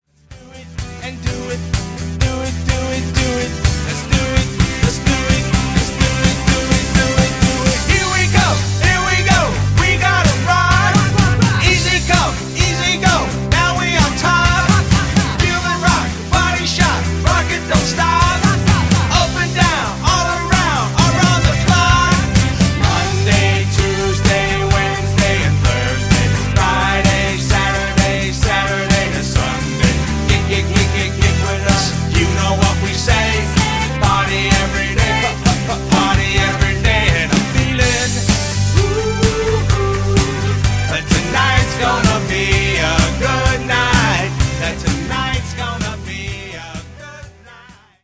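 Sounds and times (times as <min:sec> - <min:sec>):
cover band playing: 0:00.3 - 0:47.8.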